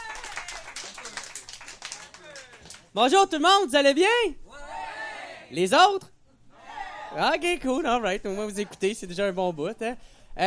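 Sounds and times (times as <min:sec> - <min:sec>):
crowd applauding: 0:00.0 - 0:03.0
speech: 0:02.9 - 0:04.4, 0:05.5 - 0:06.1, 0:07.1 - 0:10.4.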